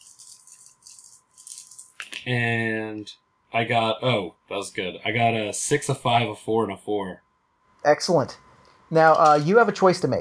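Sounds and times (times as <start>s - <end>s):
dice being rolled, rattling and clattering: 0.0s - 2.2s
speech: 2.3s - 7.2s, 7.8s - 10.1s.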